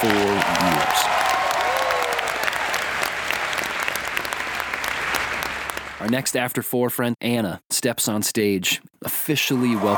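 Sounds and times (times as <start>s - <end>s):
speech: 0.0s - 1.0s, 6.0s - 9.9s
large crowd applauding and cheering after worship session: 0.0s - 6.2s, 9.6s - 9.9s
rising whoop: 0.8s - 2.6s.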